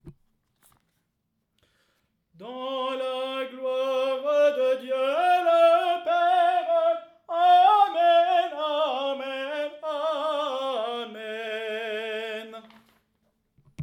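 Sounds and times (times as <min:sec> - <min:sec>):
tenor singing: 0:02.4 - 0:12.8.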